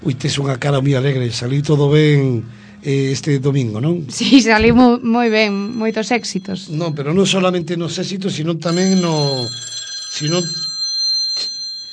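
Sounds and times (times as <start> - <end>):
speech: 0.0 - 10.7
telephone ringing: 5.1 - 11.9.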